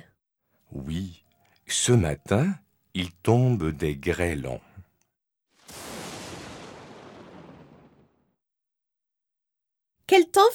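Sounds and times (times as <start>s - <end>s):
speech: 0.7s - 4.7s, 10.1s - 10.5s
thunderclap rolling into rumble: 5.7s - 8.3s.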